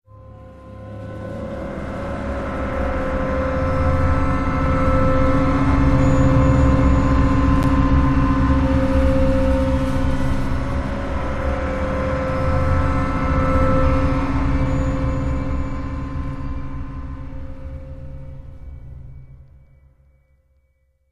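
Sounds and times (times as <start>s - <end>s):
tense music loop: 2.1s - 20.0s.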